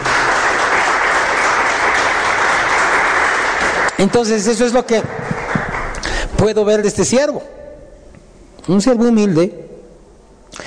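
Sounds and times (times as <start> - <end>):
large crowd applauding: 0.0 - 6.3
speech: 4.0 - 5.2, 6.4 - 7.6, 8.7 - 9.6.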